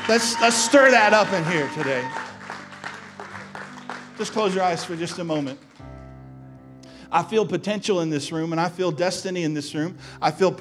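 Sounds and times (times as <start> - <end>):
audience applause: 0.0 - 6.0
speech: 0.1 - 2.3, 4.2 - 5.7, 7.1 - 10.5.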